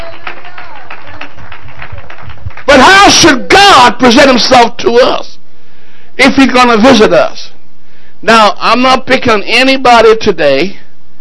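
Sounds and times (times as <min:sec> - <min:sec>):
audience clapping hands: 0:00.0 - 0:03.2
speech: 0:03.2 - 0:05.3, 0:06.2 - 0:07.5, 0:08.2 - 0:10.8.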